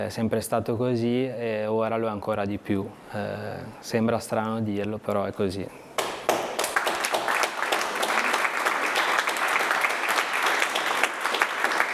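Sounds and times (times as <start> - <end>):
speech: 0.0 - 5.9
loud applause: 6.0 - 11.9.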